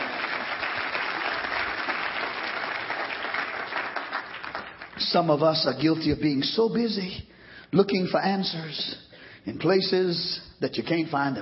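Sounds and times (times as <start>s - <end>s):
audience hand clapping: 0.0s - 5.4s
speech: 5.0s - 11.4s.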